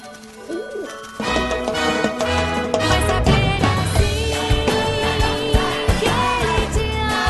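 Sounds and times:
birds cooing: 0.4 - 1.1
bright orchestral music: 0.8 - 7.2.

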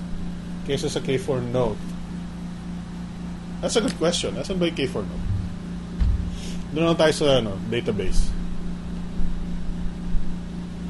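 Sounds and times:
air conditioner humming: 0.0 - 10.8
speech: 0.7 - 2.0, 3.6 - 5.3, 6.7 - 8.4.

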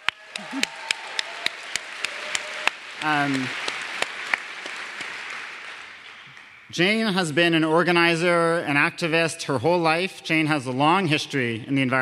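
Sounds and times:
audience applause: 0.0 - 7.1
speech: 0.4 - 0.8, 3.0 - 3.6, 6.7 - 11.9.

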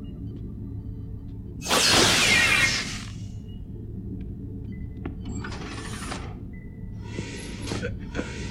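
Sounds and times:
steady low hum: 0.0 - 8.4
phaser blast hitting a door panel: 1.6 - 3.2.

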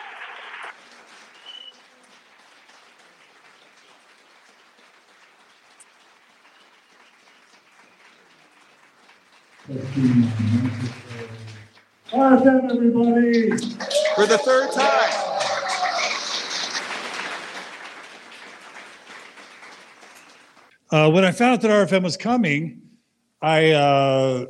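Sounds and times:
audience applause: 0.0 - 12.6, 13.3 - 20.7
speech: 9.7 - 11.3, 12.1 - 15.2, 20.9 - 22.8, 23.4 - 24.4
laughter: 9.7 - 11.6, 13.6 - 18.2.

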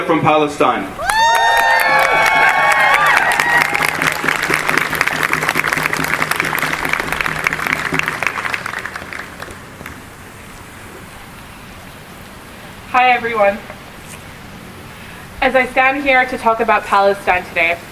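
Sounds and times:
speech: 0.1 - 1.1, 13.0 - 13.7, 15.4 - 17.9
crowd applause and cheering: 1.0 - 10.1.

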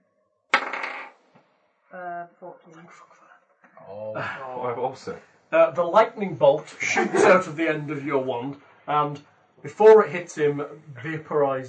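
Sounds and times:
d20 die rolled onto a hard surface: 0.6 - 1.2
speech: 1.9 - 11.6
laughter: 4.0 - 8.4.

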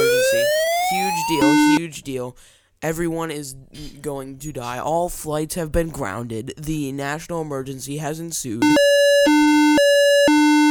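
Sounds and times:
emergency alarm sounding: 0.0 - 1.8, 8.6 - 10.6
speech: 1.3 - 9.0.

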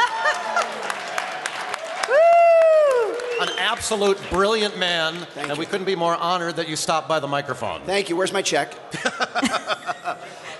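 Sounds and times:
laughter: 0.0 - 0.9, 8.9 - 10.5
audience applause: 0.0 - 5.7
speech: 3.7 - 9.6.

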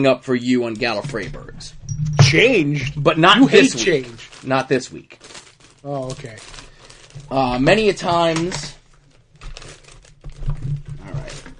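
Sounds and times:
speech: 0.0 - 6.6, 7.2 - 8.8
low rumbling hum: 1.2 - 4.1
bag being opened, crinkling and rustling: 2.9 - 11.5.

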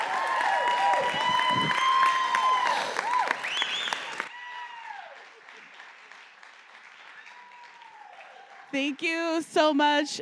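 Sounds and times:
audience applauding in welcome: 0.0 - 9.0
people cheering: 0.0 - 9.2
speech: 8.8 - 10.2.

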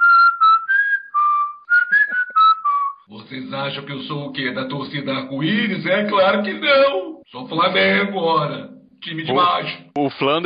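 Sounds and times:
person whistling a tune: 0.0 - 3.1
speech: 3.1 - 10.4.

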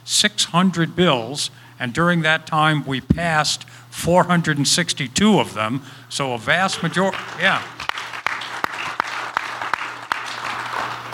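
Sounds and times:
low steady hum: 0.0 - 7.8
speech: 0.1 - 7.9
audience applause: 6.7 - 11.1.

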